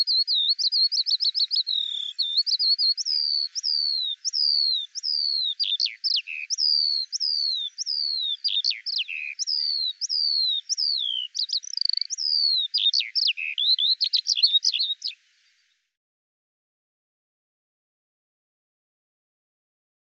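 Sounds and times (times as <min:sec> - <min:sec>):
Eurasian skylark song: 0:00.0 - 0:15.8.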